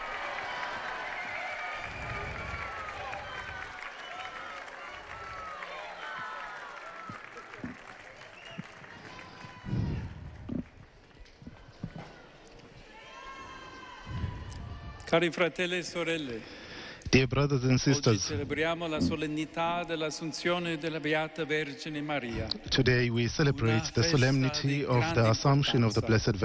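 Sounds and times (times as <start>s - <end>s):
large crowd cheering and applauding: 0.0s - 15.2s
speech: 15.1s - 26.4s.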